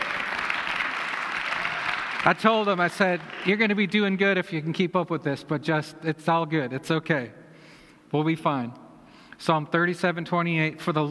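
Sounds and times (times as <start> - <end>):
applause: 0.0 - 4.0
speech: 2.2 - 7.4, 8.1 - 8.8, 9.4 - 11.0.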